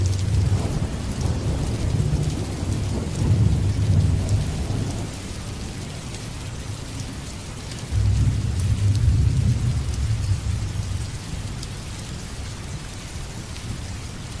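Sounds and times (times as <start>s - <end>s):
thunder: 0.0s - 5.2s, 7.9s - 11.5s
rain: 0.0s - 14.3s.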